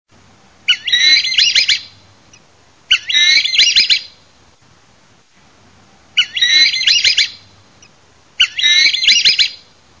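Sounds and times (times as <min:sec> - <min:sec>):
tropical kingbird calling with twittering notes: 0:00.7 - 0:04.2, 0:06.2 - 0:09.6.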